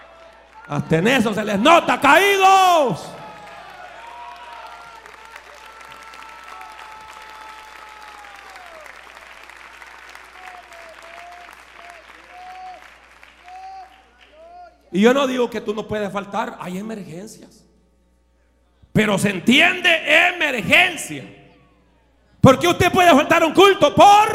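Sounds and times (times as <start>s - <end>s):
audience applause: 0.0s - 2.2s, 3.0s - 14.7s
speech: 0.7s - 3.2s, 15.0s - 17.7s, 19.0s - 21.4s, 22.4s - 24.3s.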